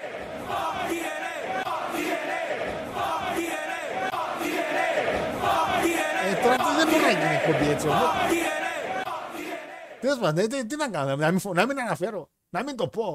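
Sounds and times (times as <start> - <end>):
people shouting outside: 0.0 - 10.0
speech: 6.6 - 8.5, 10.0 - 13.1.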